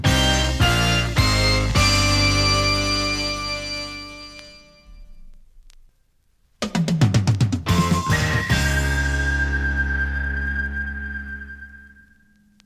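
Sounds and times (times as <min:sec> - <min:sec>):
maxi jingle single: 0:00.1 - 0:05.1, 0:07.7 - 0:12.0.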